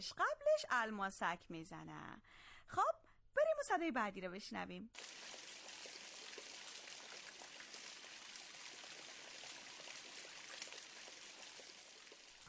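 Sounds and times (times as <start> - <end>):
speech: 0.0 - 5.4
rain falling: 5.0 - 12.4.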